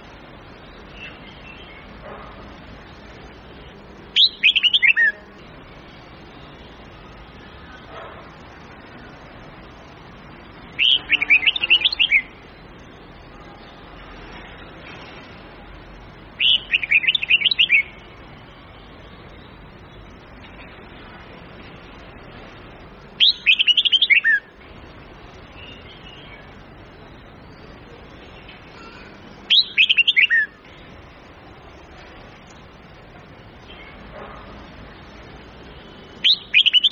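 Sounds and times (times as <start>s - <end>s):
faint steady hiss: 0.0s - 36.8s
red-whiskered bulbul song: 0.6s - 2.2s, 3.5s - 8.2s, 10.4s - 13.8s, 16.3s - 20.8s, 23.2s - 24.7s, 25.3s - 30.7s, 32.4s - 34.2s, 35.0s - 36.8s.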